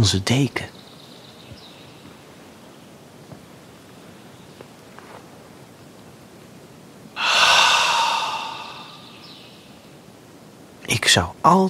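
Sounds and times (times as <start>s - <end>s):
speech: 0.0s - 0.8s, 11.0s - 11.6s
breathing in fresh winter air through the nose: 7.2s - 9.4s.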